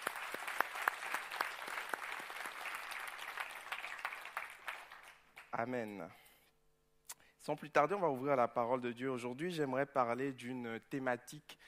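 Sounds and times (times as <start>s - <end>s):
church audience clapping for its production team: 0.0s - 5.7s
speech: 5.5s - 6.3s, 7.4s - 11.6s.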